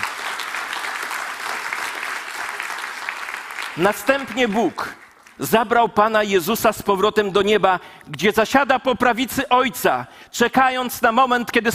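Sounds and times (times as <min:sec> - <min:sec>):
audience applause: 0:00.0 - 0:05.4
speech: 0:03.8 - 0:11.7.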